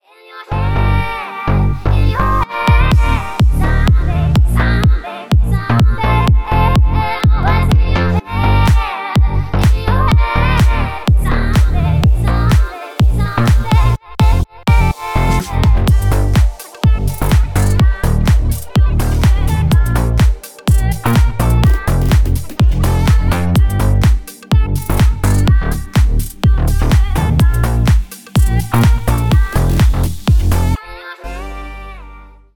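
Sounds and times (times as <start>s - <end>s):
slap house remix: 1.6s - 31.7s.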